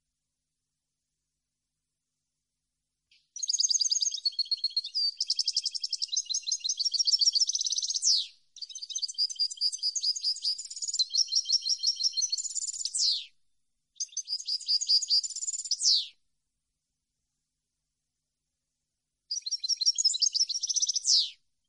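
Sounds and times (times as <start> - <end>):
European goldfinch song: 3.4 - 13.2, 14.0 - 16.1, 19.3 - 21.4.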